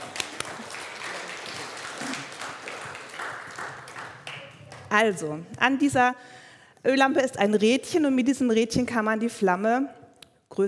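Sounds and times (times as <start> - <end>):
audience applause: 0.0 - 5.0
speech: 4.9 - 10.0.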